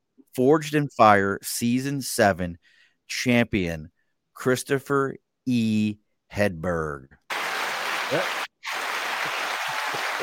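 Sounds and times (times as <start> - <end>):
speech: 0.4 - 7.2, 8.1 - 8.4
crowd applause sound effect: 7.3 - 10.2.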